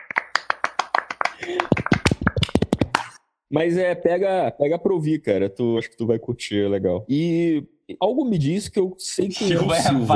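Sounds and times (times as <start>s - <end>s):
sharp hand claps: 0.0s - 3.2s
speech: 1.4s - 2.0s, 3.5s - 10.1s.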